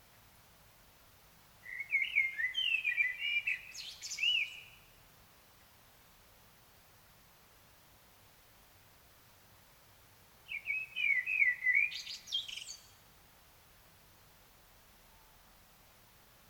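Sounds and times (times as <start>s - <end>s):
common blackbird singing: 1.6s - 4.8s, 10.5s - 13.0s.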